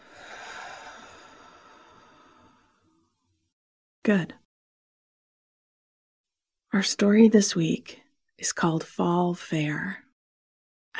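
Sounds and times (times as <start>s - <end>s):
person breathing during a guided breathing exercise: 0.0s - 3.0s
speech: 4.1s - 4.4s, 6.8s - 10.0s.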